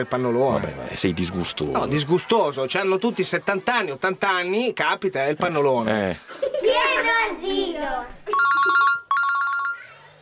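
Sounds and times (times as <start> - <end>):
speech: 0.0 - 8.8
electronic telephone ringtone: 8.3 - 10.0.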